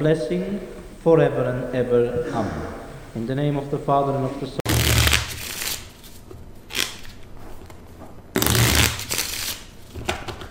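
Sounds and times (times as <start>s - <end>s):
speech: 0.0s - 4.6s
deck of cards shuffling: 4.7s - 10.4s.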